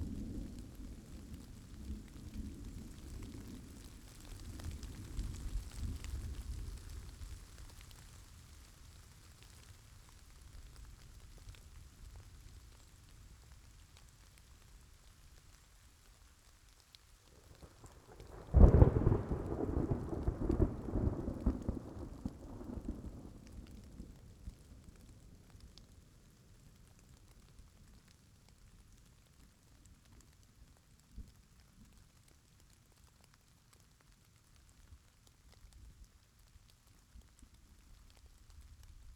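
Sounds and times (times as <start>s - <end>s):
rain: 0.0s - 39.1s
thunder: 17.9s - 23.9s.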